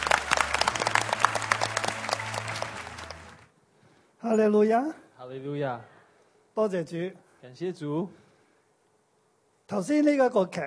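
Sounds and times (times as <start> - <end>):
audience applause: 0.0 - 3.5
speech: 4.2 - 5.9, 6.6 - 8.2, 9.7 - 10.6.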